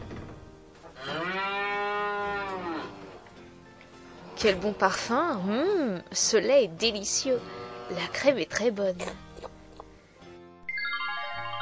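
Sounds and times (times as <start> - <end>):
cow mooing in a stable: 1.0 - 3.3, 4.1 - 5.1, 7.4 - 8.3
speech: 4.4 - 9.3.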